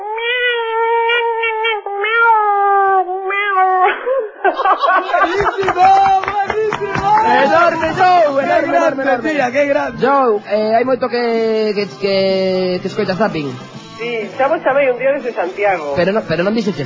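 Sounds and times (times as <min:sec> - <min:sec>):
woman imitating her own cat meowing for a ringtone: 0:00.0 - 0:04.0
laughter: 0:03.9 - 0:09.0
speech: 0:04.5 - 0:16.8
noisy overlapping voices: 0:05.0 - 0:10.1.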